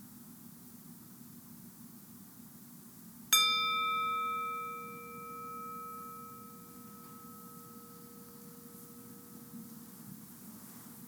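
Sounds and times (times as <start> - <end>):
meditation bell rung to close practice: 3.3 - 10.0.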